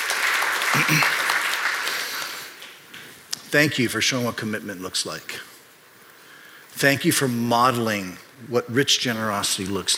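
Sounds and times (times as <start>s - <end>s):
audience applause: 0.0s - 2.8s
speech: 0.7s - 1.2s, 3.5s - 5.5s, 6.8s - 9.9s.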